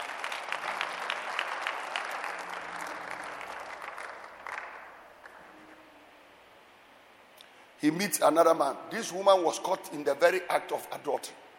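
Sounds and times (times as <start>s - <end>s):
audience clapping: 0.0s - 5.5s
speech: 7.8s - 11.4s.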